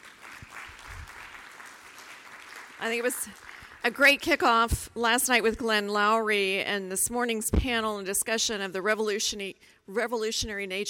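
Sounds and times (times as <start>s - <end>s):
audience applause for conference speakers and chairs: 0.0s - 3.9s
speech: 2.8s - 10.8s.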